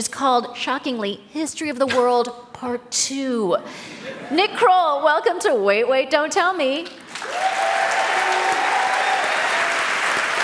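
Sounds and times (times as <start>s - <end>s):
speech: 0.0s - 7.6s
crowd applause: 7.1s - 10.4s
faint cheer: 7.2s - 10.4s.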